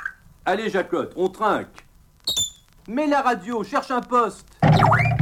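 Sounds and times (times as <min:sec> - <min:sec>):
speech: 0:00.5 - 0:01.8, 0:02.9 - 0:05.1
bottle being uncorked: 0:02.3 - 0:02.7.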